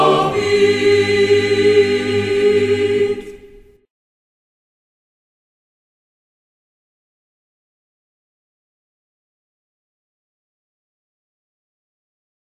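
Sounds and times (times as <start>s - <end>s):
hymn: 0.0s - 3.8s.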